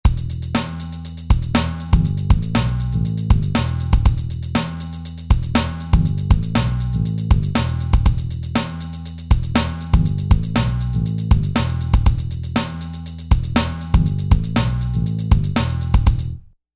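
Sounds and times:
funk music: 0.1s - 16.3s.

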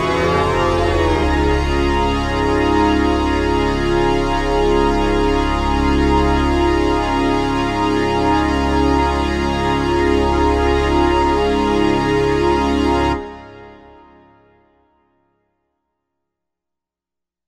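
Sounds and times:
orbit synth pad: 0.0s - 13.7s.

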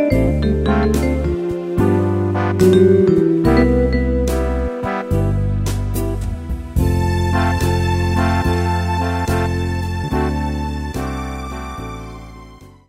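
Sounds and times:
easy listening swing and jazz keyboard style: 0.0s - 12.2s.

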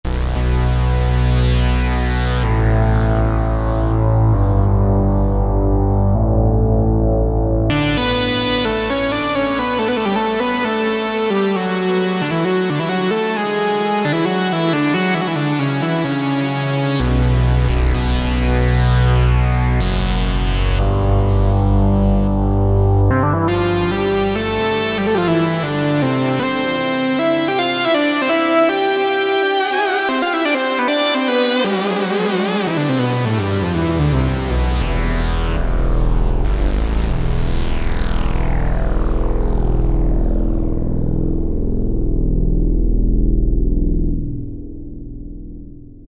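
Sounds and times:
synth lead drone: 0.1s - 46.0s.

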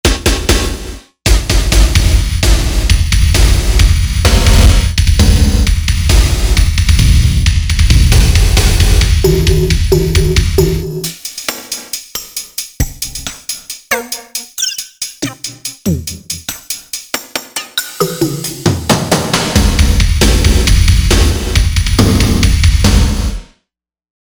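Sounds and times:
drum layer: 0.1s - 23.3s
synth: 13.9s - 16.4s.

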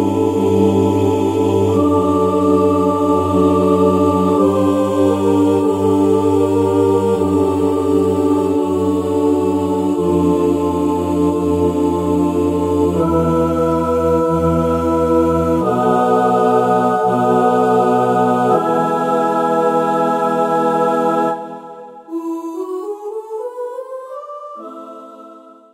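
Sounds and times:
mixed choir on a synthesizer: 0.0s - 25.7s.

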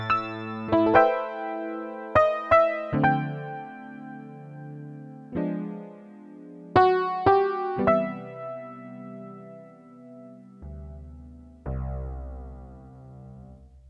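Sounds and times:
spread piano on a Yamaha TX802 synthesizer: 0.0s - 13.8s.

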